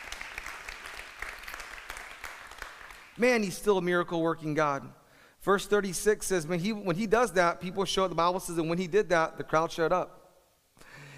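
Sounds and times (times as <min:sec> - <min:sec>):
audience applause: 0:00.0 - 0:03.2
speech: 0:03.2 - 0:10.2.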